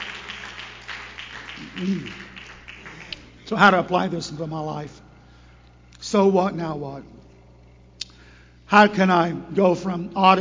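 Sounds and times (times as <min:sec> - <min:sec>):
audience hand clapping: 0:00.0 - 0:03.6
speech: 0:01.8 - 0:02.3, 0:03.5 - 0:05.0, 0:06.0 - 0:07.3, 0:08.7 - 0:10.4.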